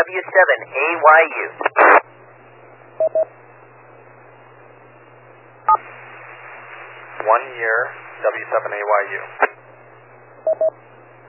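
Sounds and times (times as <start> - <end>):
speech: 0.0 - 2.0, 3.1 - 3.4, 7.2 - 9.6, 10.4 - 10.9
steady hiss and low hum: 0.0 - 11.2
radio repeater two short beep tones on keying up: 3.0 - 3.3, 10.5 - 10.7.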